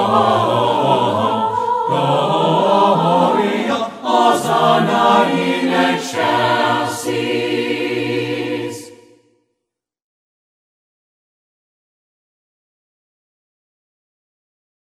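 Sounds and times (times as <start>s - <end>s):
madrigal singers singing a Christmas carol: 0.0s - 9.3s.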